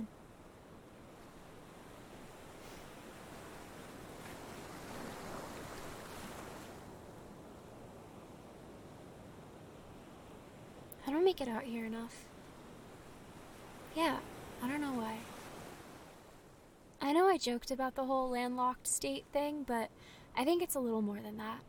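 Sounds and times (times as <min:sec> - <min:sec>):
ocean surf waves breaking on shore: 0:00.1 - 0:10.9, 0:12.2 - 0:16.9
speech: 0:11.1 - 0:12.3, 0:14.0 - 0:15.3, 0:17.3 - 0:21.6.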